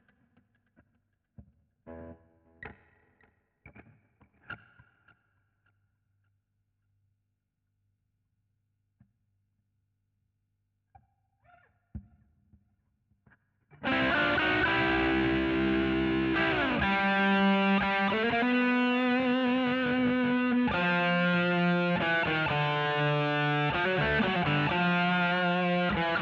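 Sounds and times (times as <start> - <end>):
guitar solo: 13.8 - 26.1.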